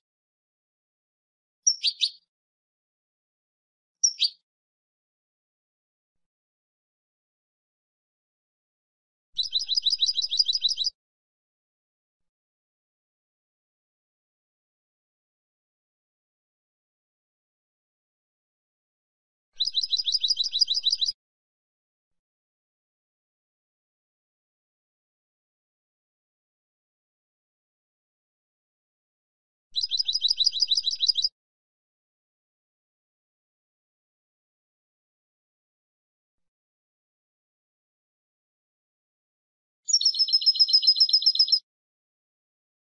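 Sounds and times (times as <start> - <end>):
European goldfinch twittering song: 1.7 - 2.2, 4.0 - 4.4, 9.4 - 10.9, 19.6 - 21.2, 29.8 - 31.3, 39.9 - 41.6.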